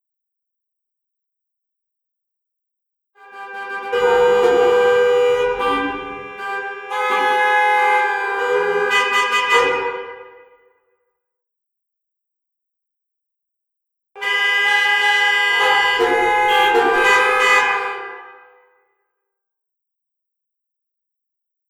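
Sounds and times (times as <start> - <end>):
car horns in New York City: 3.2 - 10.6, 14.2 - 18.7.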